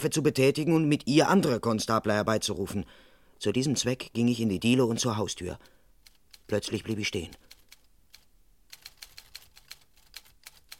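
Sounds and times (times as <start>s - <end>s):
speech: 0.0s - 5.7s, 6.5s - 7.5s
typewriter typing on the first floor of a house: 6.0s - 10.7s.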